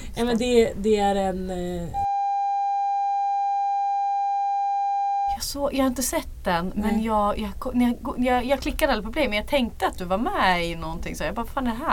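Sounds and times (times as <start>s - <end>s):
speech: 0.2s - 2.0s, 5.5s - 11.9s
censor bleep tone: 2.0s - 5.4s.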